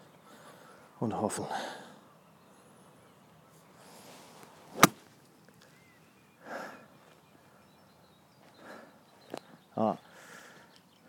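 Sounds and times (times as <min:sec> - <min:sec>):
speech: 0:01.0 - 0:01.8
golf club striking the ball from an awkward lie: 0:04.7 - 0:05.1.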